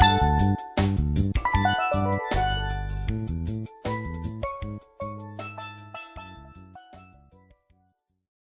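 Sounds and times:
solo steel pan playing: 0:00.0 - 0:00.8, 0:01.4 - 0:07.3.

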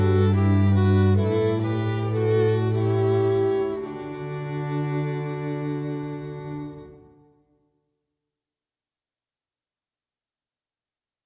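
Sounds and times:
harp: 0:00.0 - 0:07.2.

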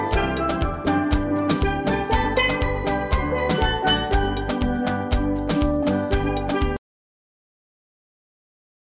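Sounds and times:
steel drum: 0:00.0 - 0:06.8.

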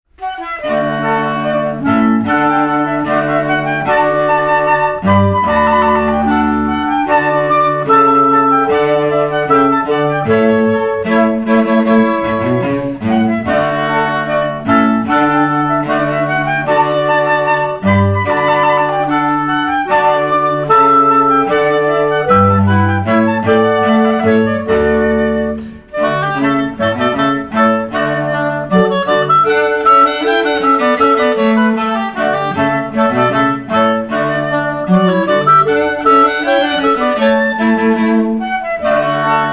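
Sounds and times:
classical trio playing: 0:00.0 - 0:39.5.

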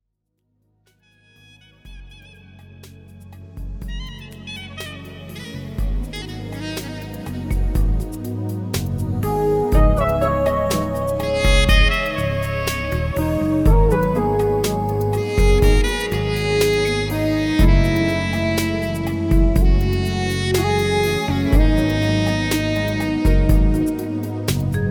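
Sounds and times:
saxophone: 0:01.0 - 0:24.8.

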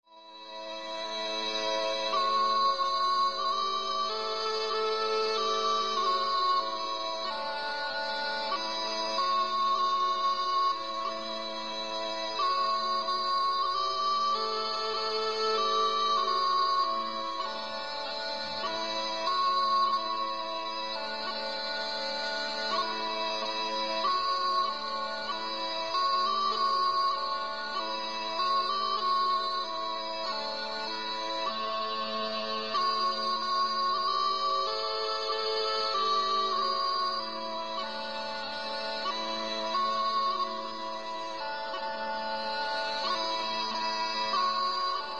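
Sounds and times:
string quartet playing chamber music: 0:00.5 - 0:45.1.

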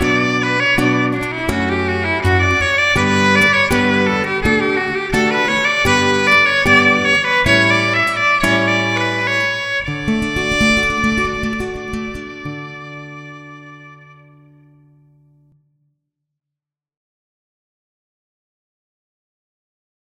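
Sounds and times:
violin in an acoustic duo: 0:00.0 - 0:14.9
acoustic guitar in an acoustic duo: 0:00.0 - 0:15.5.

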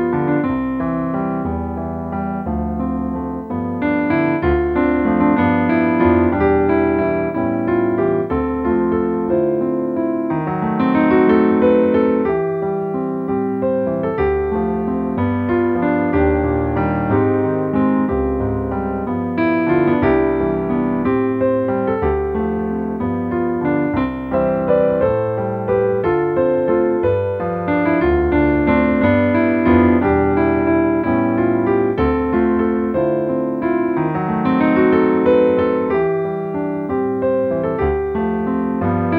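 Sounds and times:
piano keyboard playing a holiday medley: 0:00.0 - 0:39.1.

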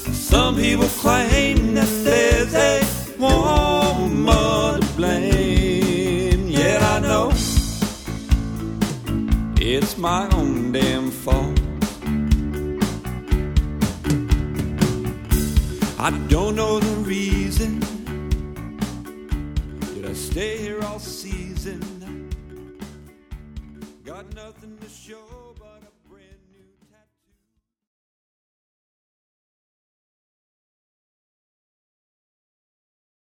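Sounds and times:
guitar: 0:00.0 - 0:26.2.

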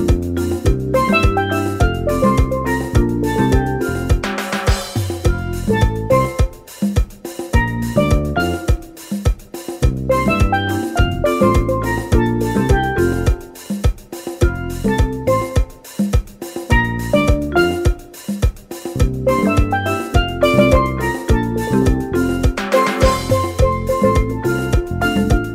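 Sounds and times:
calypso music with steel drum: 0:00.0 - 0:25.5.

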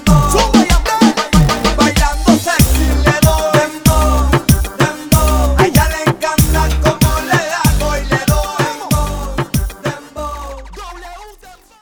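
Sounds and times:
reggaeton music mix by a mobile DJ: 0:00.0 - 0:11.8.

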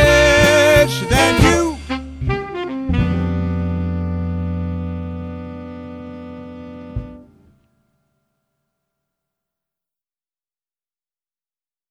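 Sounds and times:
swing band combo playing: 0:00.0 - 0:07.4.

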